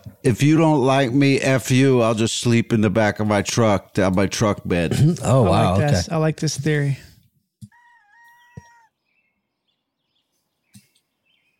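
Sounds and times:
speech: 0.2s - 7.1s
rooster crowing: 7.7s - 9.0s
bird chirps: 7.7s - 11.5s.

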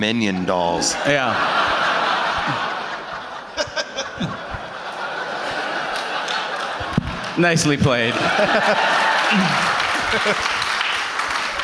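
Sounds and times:
speech: 0.0s - 2.7s, 7.4s - 10.6s
laughter: 0.1s - 11.6s
audience applause: 5.1s - 11.6s
voices cheering: 8.1s - 11.6s.

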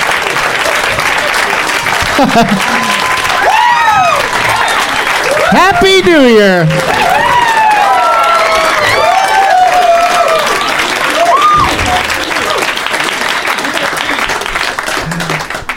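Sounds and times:
large crowd applauding: 0.0s - 15.7s
laughter: 0.3s - 3.4s, 11.7s - 15.7s
speech: 2.2s - 2.8s, 5.5s - 7.1s
whoops and cheering shouts: 2.3s - 5.8s, 6.9s - 12.0s.

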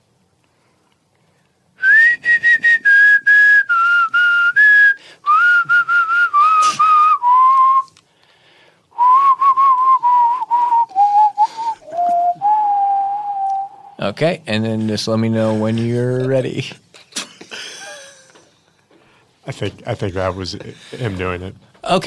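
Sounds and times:
whistled show theme tune: 1.8s - 7.9s, 9.0s - 14.0s
speech: 14.1s - 16.8s, 19.5s - 22.0s.

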